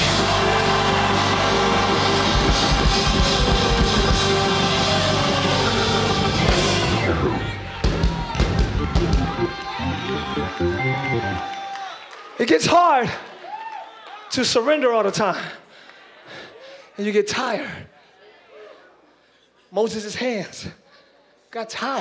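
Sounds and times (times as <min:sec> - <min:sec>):
scattered shouts: 0:00.0 - 0:11.8
audience screaming: 0:00.0 - 0:12.4
speech: 0:12.5 - 0:13.3, 0:14.3 - 0:15.6, 0:17.0 - 0:17.9, 0:19.7 - 0:20.8, 0:21.5 - 0:21.9.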